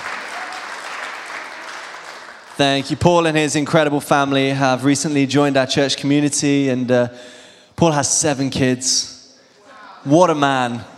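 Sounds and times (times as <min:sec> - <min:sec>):
audience applause: 0:00.0 - 0:03.0
speech: 0:02.6 - 0:09.2, 0:10.0 - 0:10.9.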